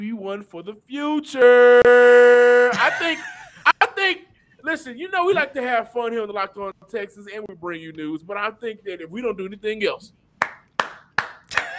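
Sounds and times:
speech: 0.2 - 3.4, 4.0 - 10.2
hand claps: 10.4 - 11.7.

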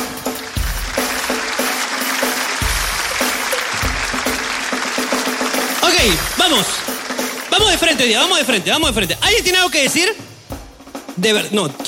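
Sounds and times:
audience applause: 0.0 - 9.8
speech: 6.0 - 6.9, 7.6 - 10.3, 11.2 - 11.8.

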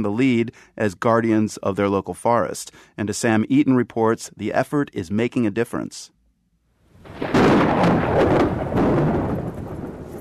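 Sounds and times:
speech: 0.0 - 6.2, 7.0 - 8.6
thunder rumbling: 7.0 - 10.1.

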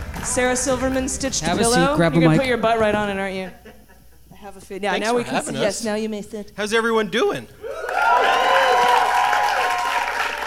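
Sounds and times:
crowd applauding: 0.0 - 1.1, 7.6 - 10.4
speech: 0.2 - 3.8, 4.4 - 8.2
cheers and shouting voices: 7.6 - 10.4.

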